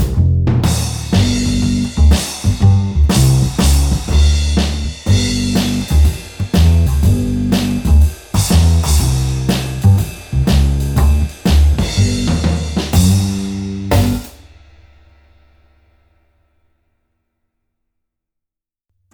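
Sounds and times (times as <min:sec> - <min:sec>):
instrumental music: 0:00.0 - 0:14.6.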